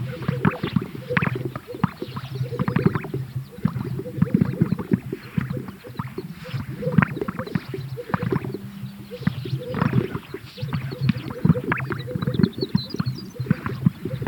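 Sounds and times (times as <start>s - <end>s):
greater sage-grouse popping, gulping and swishing display sounds: 0.0s - 14.2s.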